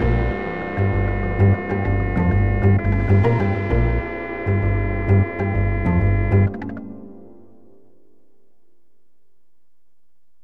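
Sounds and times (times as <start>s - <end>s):
saxophone with electronics: 0.0s - 7.8s.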